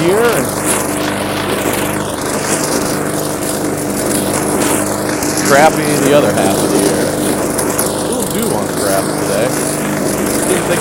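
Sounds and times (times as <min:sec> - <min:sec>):
lawn mower engine droning over grass: 0:00.0 - 0:10.7
speech: 0:05.6 - 0:06.9, 0:09.0 - 0:09.7, 0:10.5 - 0:10.7.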